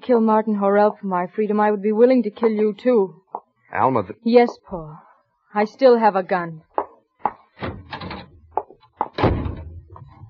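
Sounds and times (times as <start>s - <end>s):
speech: 0.0s - 6.7s
door slamming shut and being locked: 7.6s - 8.4s, 9.1s - 9.9s.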